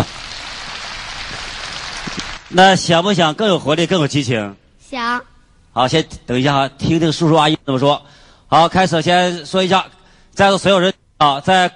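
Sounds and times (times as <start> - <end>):
audience applause: 0.0 - 2.5
speech: 2.5 - 11.7.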